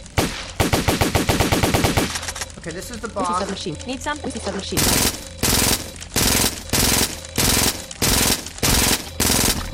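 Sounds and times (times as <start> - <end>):
Uzi submachine gun firing in video game: 0.2 - 2.4, 4.8 - 9.7
speech: 2.7 - 5.3.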